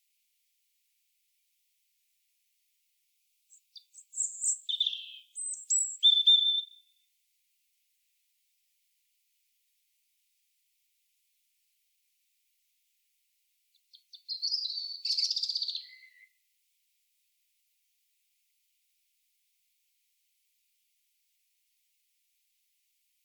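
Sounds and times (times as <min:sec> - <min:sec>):
European robin song: 0:03.5 - 0:07.0, 0:13.7 - 0:16.4.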